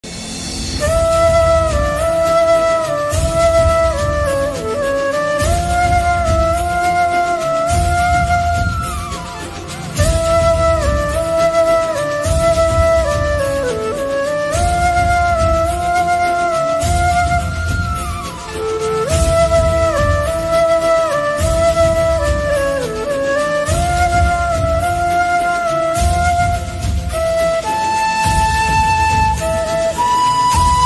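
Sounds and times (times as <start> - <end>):
flute music: 0.0 - 30.8.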